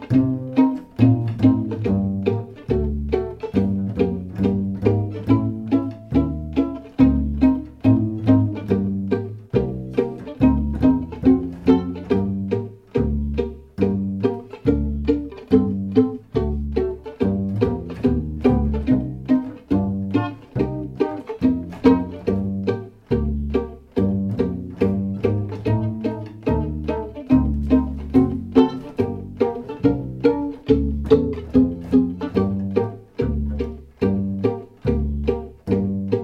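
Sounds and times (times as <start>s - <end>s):
minor blues backing track: 0.0s - 36.2s.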